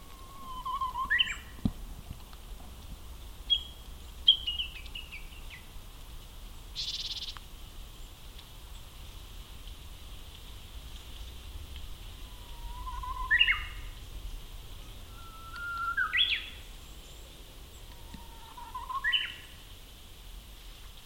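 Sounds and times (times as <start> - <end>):
Japanese bush warbler song: 0.0 - 1.7, 3.2 - 5.8, 6.5 - 9.0, 11.9 - 19.7.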